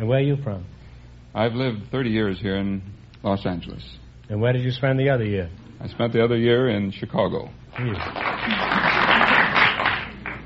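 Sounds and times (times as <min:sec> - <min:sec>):
speech: 0:00.0 - 0:08.9
audience applauding: 0:07.7 - 0:10.4.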